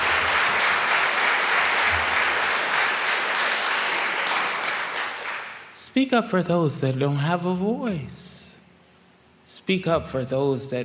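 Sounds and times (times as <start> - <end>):
audience clapping: 0.0 - 5.8
speech: 6.0 - 8.4, 9.7 - 10.8.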